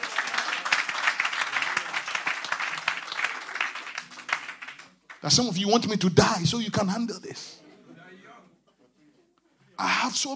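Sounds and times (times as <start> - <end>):
audience clapping: 0.0 - 6.4
speech: 5.2 - 7.6, 10.1 - 10.3.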